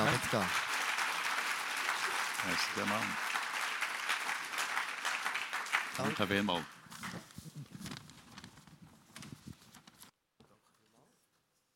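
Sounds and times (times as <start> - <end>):
audience applause: 0.0 - 6.8
speech: 0.2 - 0.6, 2.4 - 3.3, 6.0 - 7.7.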